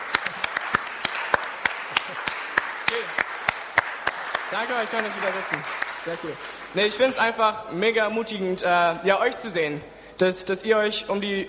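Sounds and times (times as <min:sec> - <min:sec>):
applause from a seated audience honoring former group leaders: 0:00.0 - 0:06.8
speech: 0:04.5 - 0:11.4.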